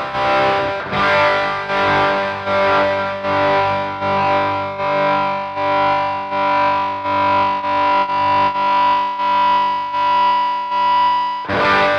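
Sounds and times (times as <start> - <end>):
choppy rock electric guitar with tremolo pedal through a tube amplifier: 0.0 - 11.9.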